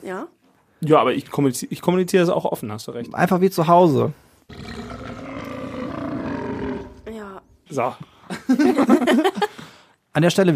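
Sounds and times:
speech: 0.0 - 4.8, 7.7 - 9.5, 10.2 - 10.5
burp into the microphone: 4.5 - 7.2
laughter: 8.3 - 9.7.

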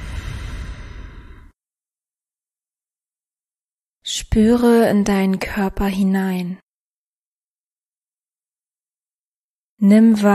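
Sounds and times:
deep breath during a guided breathing exercise: 0.0 - 1.6
speech: 4.1 - 6.6, 9.8 - 10.3.

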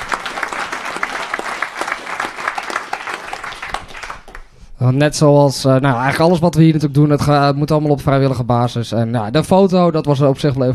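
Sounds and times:
applause: 0.0 - 4.6
speech: 4.8 - 10.7.

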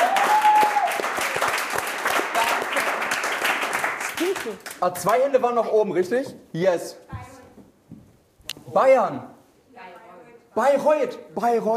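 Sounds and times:
audience applause: 0.0 - 4.8
speech: 4.4 - 7.1, 8.7 - 9.3, 10.6 - 11.7.

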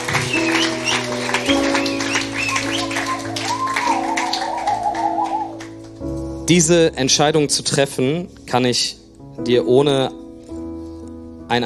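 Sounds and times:
audience applause: 0.0 - 6.0
sustained keyboard chords and melodic music: 0.0 - 11.6
speech: 6.5 - 10.2, 11.5 - 11.6.

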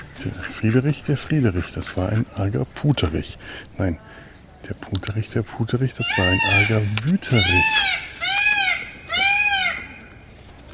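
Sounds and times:
speech: 0.2 - 8.0
peacock screaming: 6.0 - 10.1.

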